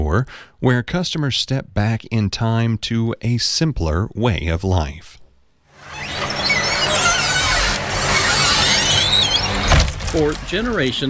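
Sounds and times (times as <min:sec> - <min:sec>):
speech: 0:00.2 - 0:05.2, 0:10.1 - 0:11.0
screen door opening with a squeak: 0:05.8 - 0:11.0.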